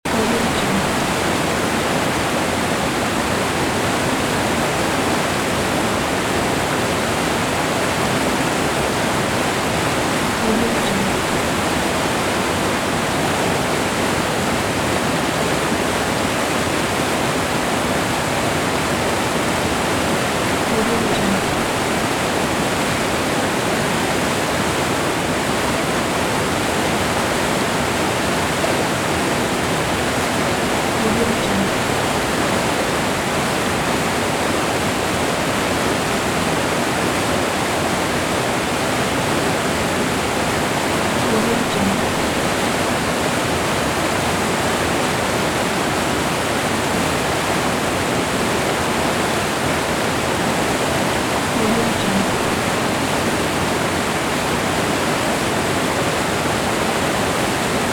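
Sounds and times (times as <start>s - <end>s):
waterfall: 0.0s - 57.9s.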